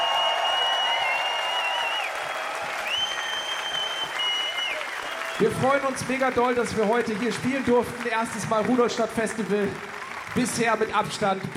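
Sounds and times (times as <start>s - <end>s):
long high whistle: 0.0s - 5.5s
festival crowd applauding: 0.0s - 11.5s
speech: 5.4s - 11.5s.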